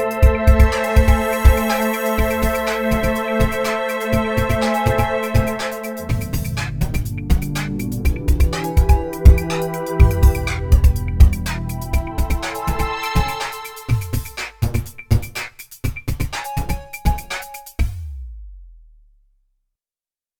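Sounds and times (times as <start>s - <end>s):
drama synthesizer pad: 0.0s - 14.8s.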